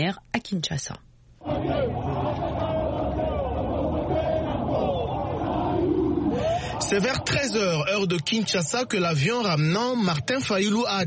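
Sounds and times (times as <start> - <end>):
speech: 0.0 - 2.5, 6.8 - 11.0
large crowd of supporters cheering and chanting: 1.4 - 10.4.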